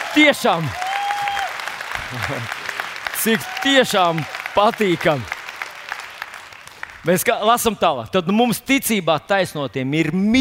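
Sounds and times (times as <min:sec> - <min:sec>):
thin applause: 0:00.0 - 0:07.4
speech: 0:00.2 - 0:00.8, 0:02.1 - 0:02.6, 0:03.2 - 0:05.3, 0:07.0 - 0:10.3.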